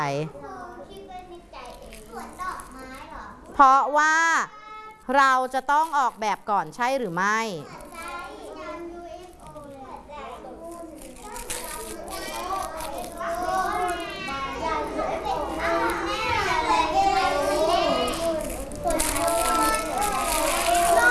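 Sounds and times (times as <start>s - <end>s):
speech: 0.0s - 0.6s, 3.6s - 8.1s
noisy children chattering and shouting in a classroom: 0.0s - 21.0s.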